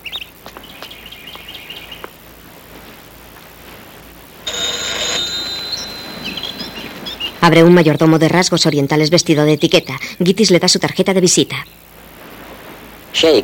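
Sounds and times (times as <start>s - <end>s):
doorbell ringing: 4.5s - 7.6s
speech: 7.4s - 11.6s, 13.2s - 13.4s.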